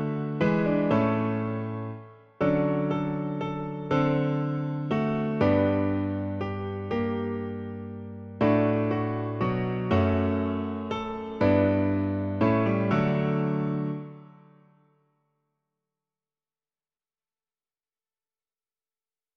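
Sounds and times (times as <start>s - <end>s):
piano: 0.0s - 15.1s.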